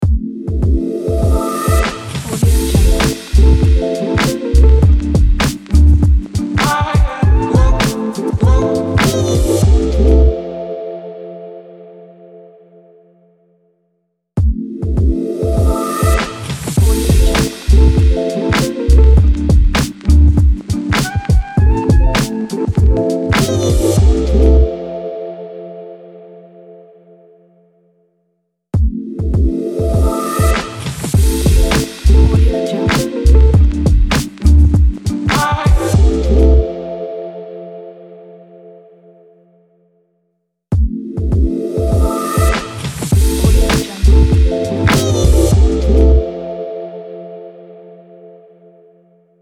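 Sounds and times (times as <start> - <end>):
hip hop jingle: 0.0 - 10.9, 14.6 - 25.0, 29.2 - 37.1, 40.8 - 46.8.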